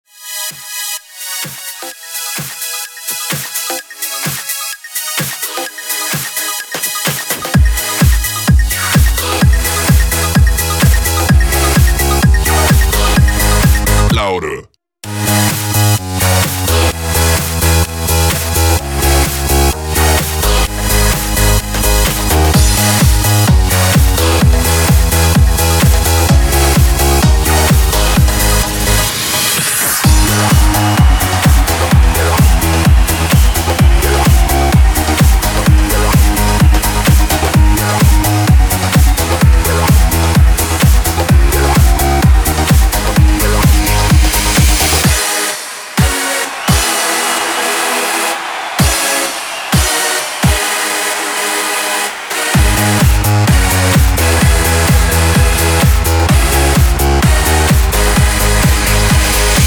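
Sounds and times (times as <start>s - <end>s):
dance music: 0.0s - 59.6s.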